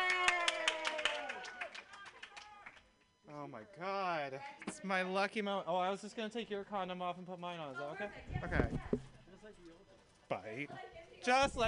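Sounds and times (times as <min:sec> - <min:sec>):
audience clapping for a performer at a happy-hour open mic: 0:00.0 - 0:03.0
speech: 0:03.6 - 0:11.6.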